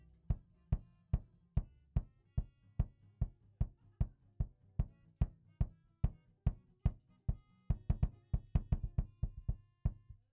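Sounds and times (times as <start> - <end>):
kick drum: 0.0 - 10.3.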